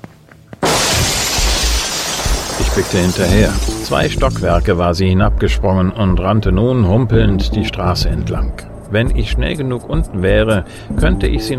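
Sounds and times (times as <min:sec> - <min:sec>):
window glass shattering as someone leaps out through it: 0:00.6 - 0:04.7
speech: 0:02.8 - 0:11.5.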